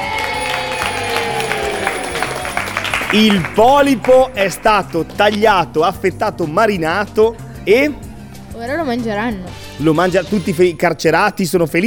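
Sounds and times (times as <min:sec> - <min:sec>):
people shouting with joy: 0:00.0 - 0:04.0
speech: 0:03.1 - 0:11.8.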